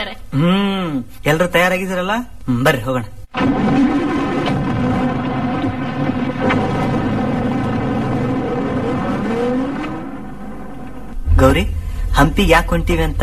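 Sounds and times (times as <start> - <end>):
speech: 0.1 - 4.0, 11.4 - 13.2
arriving car engine humming: 3.4 - 13.2.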